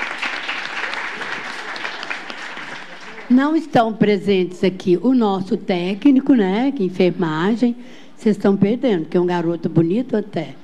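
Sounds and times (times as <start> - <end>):
audience applause: 0.0 - 3.4
speech: 3.3 - 10.6.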